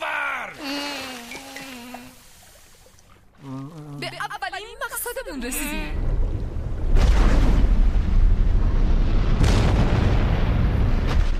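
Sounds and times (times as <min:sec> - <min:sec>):
speech: 0:05.1 - 0:06.1
underwater volcano eruption rumbling: 0:06.0 - 0:11.3.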